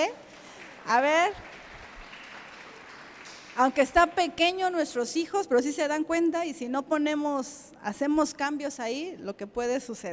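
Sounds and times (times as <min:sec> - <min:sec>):
audience applauding: 0:00.0 - 0:04.2
speech: 0:00.8 - 0:01.5, 0:03.6 - 0:10.1.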